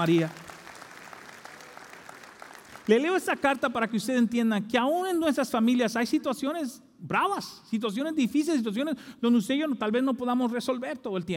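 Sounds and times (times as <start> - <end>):
speech: 0.0 - 0.4, 2.9 - 11.3
audience applause: 0.0 - 3.6.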